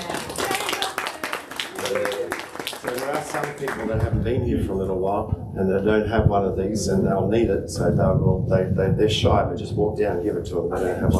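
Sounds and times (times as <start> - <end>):
audience clapping: 0.0 - 4.2
speech: 2.9 - 11.1.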